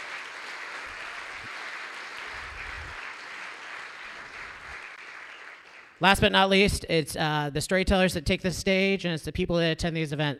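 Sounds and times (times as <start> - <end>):
audience applause: 0.0 - 6.0
speech: 6.0 - 10.3.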